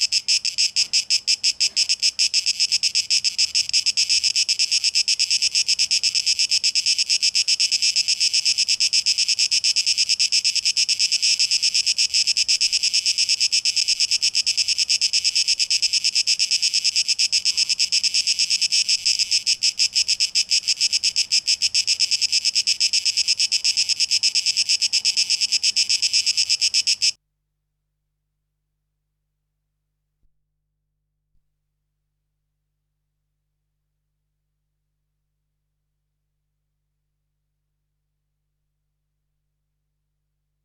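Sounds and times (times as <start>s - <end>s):
cicadas singing a shrill pulsing buzz: 0.0s - 27.2s.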